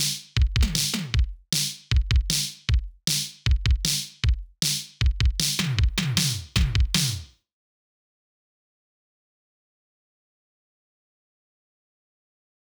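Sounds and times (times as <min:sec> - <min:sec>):
main drums: 0:00.0 - 0:07.3.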